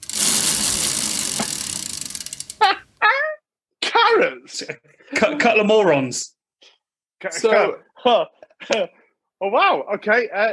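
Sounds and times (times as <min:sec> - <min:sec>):
prize wheel spinning with ratcheting clicks: 0:00.0 - 0:02.8
person exclaiming: 0:02.6 - 0:03.4
speech: 0:04.5 - 0:06.4, 0:07.2 - 0:10.5.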